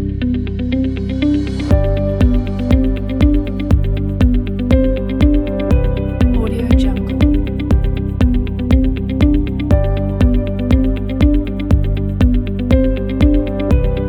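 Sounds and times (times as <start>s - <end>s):
corporate motivational music: 0.1s - 14.0s.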